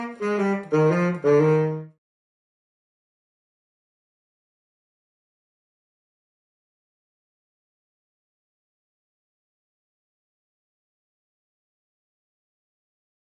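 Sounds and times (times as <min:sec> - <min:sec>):
saxophone: 0:00.0 - 0:02.0.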